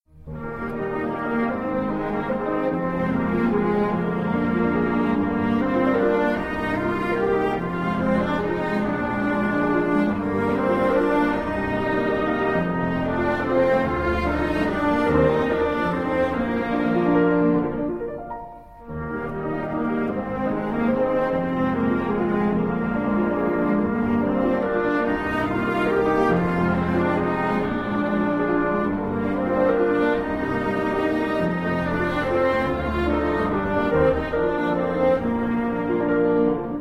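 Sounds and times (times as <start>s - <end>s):
minuet: 0.1s - 36.8s.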